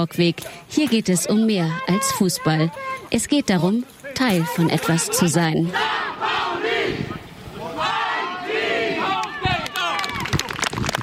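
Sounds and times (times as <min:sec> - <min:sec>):
speech: 0:00.0 - 0:06.4
crowd cheering and shouting: 0:01.3 - 0:03.1, 0:04.2 - 0:10.6
clapping: 0:09.1 - 0:11.0.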